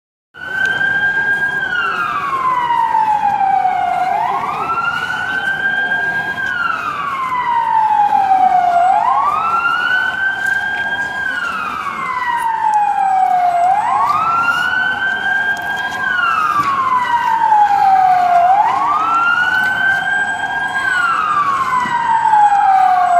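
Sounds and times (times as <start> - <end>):
ambulance siren: 0.3 - 23.1.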